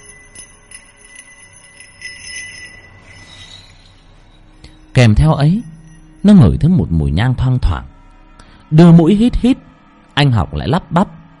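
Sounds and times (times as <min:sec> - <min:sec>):
ritual worship bells jingling: 0:00.0 - 0:07.6
speech: 0:05.0 - 0:08.0, 0:08.7 - 0:11.2.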